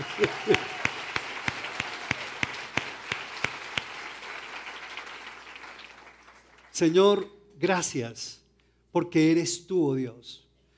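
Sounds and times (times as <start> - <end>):
laughter: 0.0 - 0.9
audience applauding loudly: 0.0 - 7.0
speech: 0.1 - 0.7, 6.8 - 10.4.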